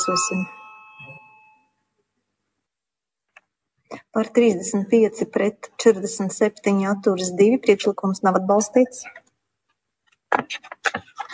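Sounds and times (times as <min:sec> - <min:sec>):
speech: 0:00.0 - 0:00.6, 0:03.9 - 0:09.2, 0:10.4 - 0:11.3
parliamentary bell ringing to call a vote: 0:00.0 - 0:01.8.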